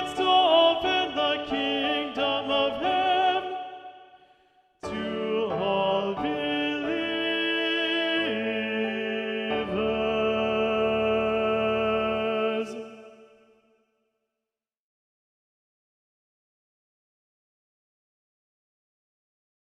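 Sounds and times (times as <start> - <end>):
tenor singing: 0.0 - 13.4.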